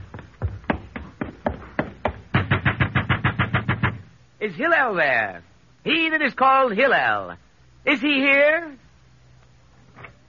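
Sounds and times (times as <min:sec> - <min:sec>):
knocking on a door: 0:00.2 - 0:04.0
speech: 0:04.4 - 0:08.8.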